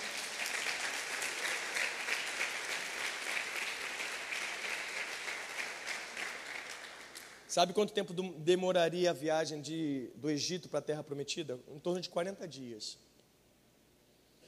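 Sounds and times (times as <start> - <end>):
crowd applause: 0.0 - 7.4
speech: 7.6 - 13.1.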